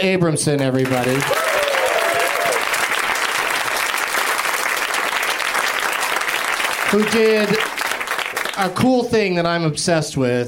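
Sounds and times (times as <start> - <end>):
speech: 0.0 - 1.6, 6.9 - 7.6, 8.6 - 10.4
crowd applause: 0.8 - 8.9.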